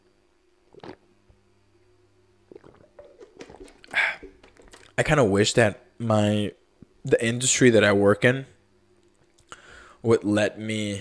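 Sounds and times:
person drinking water: 0:00.6 - 0:01.1, 0:02.5 - 0:05.0
speech: 0:05.0 - 0:08.6, 0:10.0 - 0:10.9.

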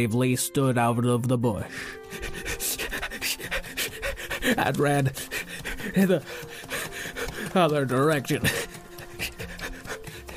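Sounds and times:
speech: 0:00.0 - 0:02.6, 0:04.4 - 0:06.5, 0:07.5 - 0:08.6
dog sniffing around: 0:02.1 - 0:07.6, 0:08.5 - 0:10.3.

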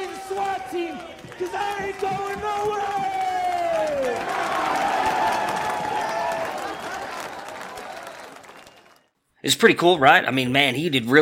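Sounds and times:
shouts: 0:00.0 - 0:08.9
large stadium crowd cheering: 0:00.0 - 0:09.1
scattered clapping: 0:00.0 - 0:09.1
speech: 0:01.4 - 0:03.0, 0:09.4 - 0:11.2
rising whistle: 0:05.0 - 0:09.1.

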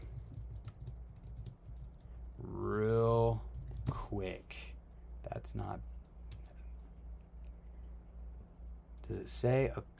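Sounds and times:
faint typing on a computer keyboard: 0:00.0 - 0:02.4, 0:03.0 - 0:04.0
speech: 0:05.4 - 0:05.9, 0:09.1 - 0:09.9.

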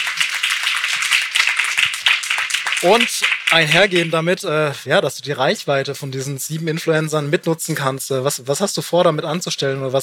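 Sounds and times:
applause: 0:00.0 - 0:04.2
speech: 0:02.8 - 0:10.0.

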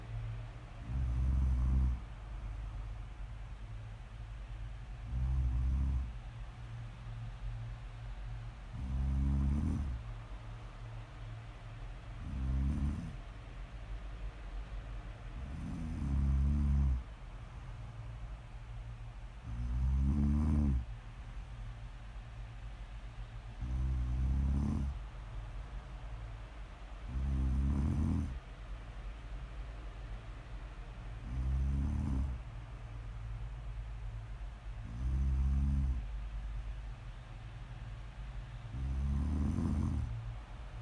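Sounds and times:
faint hiss: 0:00.0 - 0:40.8
person snoring: 0:00.8 - 0:02.0, 0:05.1 - 0:06.1, 0:08.8 - 0:10.0, 0:12.2 - 0:13.2, 0:15.4 - 0:17.0, 0:19.5 - 0:20.8, 0:23.6 - 0:25.0, 0:27.1 - 0:28.4, 0:31.2 - 0:32.4, 0:34.8 - 0:36.0, 0:38.8 - 0:40.1.

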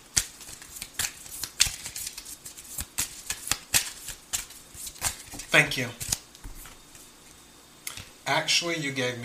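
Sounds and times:
playing cards being handed over at a table: 0:00.0 - 0:07.0
speech: 0:05.6 - 0:06.0, 0:08.3 - 0:09.2.

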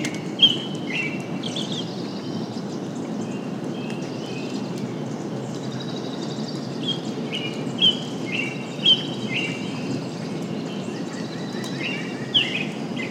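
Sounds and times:
songbirds chirping and whistling: 0:00.0 - 0:13.1.

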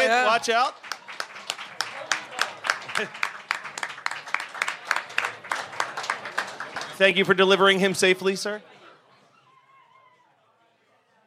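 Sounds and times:
audience applause: 0:00.0 - 0:08.2
speech: 0:00.4 - 0:00.9, 0:03.0 - 0:03.2, 0:07.0 - 0:08.7.

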